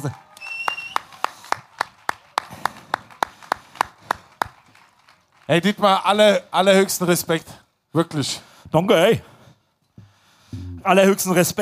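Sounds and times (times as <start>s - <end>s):
speech: 0.0s - 0.2s, 5.5s - 9.3s, 10.8s - 11.5s
applause: 0.0s - 6.4s.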